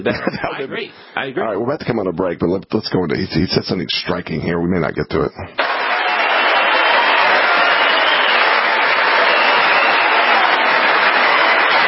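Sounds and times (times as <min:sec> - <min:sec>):
laughter: 0:00.0 - 0:00.9
speech: 0:00.0 - 0:05.8
sustained applause from a large audience: 0:05.6 - 0:11.8.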